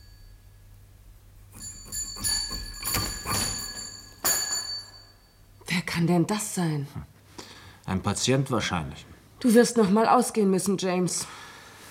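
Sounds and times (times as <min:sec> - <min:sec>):
house door bell ringing: 0:00.0 - 0:00.6, 0:01.5 - 0:05.5
speech: 0:06.0 - 0:07.2, 0:07.9 - 0:11.5.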